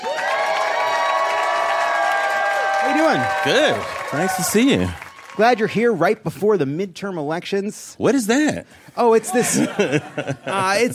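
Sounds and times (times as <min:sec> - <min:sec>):
studio audience cheering and applauding a guest: 0:00.0 - 0:06.5
speech: 0:02.9 - 0:10.9
laughter: 0:09.2 - 0:10.9.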